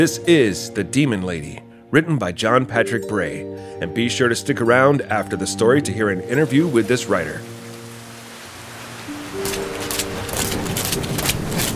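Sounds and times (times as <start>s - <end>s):
speech: 0.0s - 7.6s
rainstorm: 6.4s - 11.7s.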